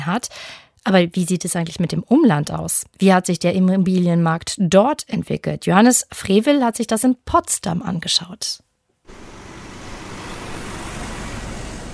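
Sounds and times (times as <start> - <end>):
speech: 0.0 - 9.3
concrete mixer trucks driving in a long line beside a park in Potsdam: 9.1 - 11.9.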